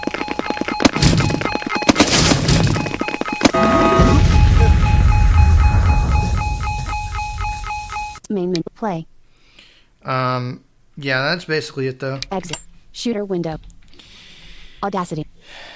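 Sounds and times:
video game missile bangs and clanking hits: 0.0s - 8.2s
speech: 8.8s - 9.2s, 10.0s - 13.7s, 14.8s - 15.7s.

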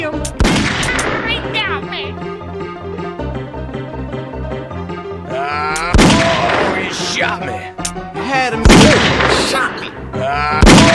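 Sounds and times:
steady musical backing: 0.0s - 10.3s
video game gunfire: 0.4s - 1.2s, 5.9s - 6.8s, 8.6s - 9.6s, 10.6s - 10.9s.

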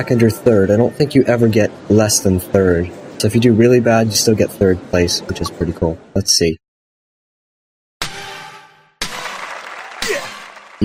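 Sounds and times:
speech: 0.0s - 6.6s
video game crowd cheering: 9.0s - 10.8s.

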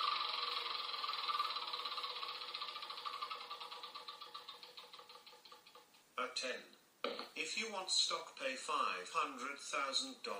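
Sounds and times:
board game spinner wheel whirring with ratcheting clicks: 0.0s - 6.0s
speech: 6.2s - 6.8s, 7.4s - 10.3s.

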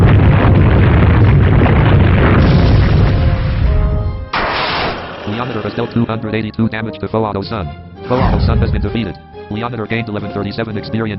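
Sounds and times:
video game earthquake attack rumbling boom: 0.0s - 6.2s, 8.1s - 9.0s
speech: 5.7s - 11.1s.

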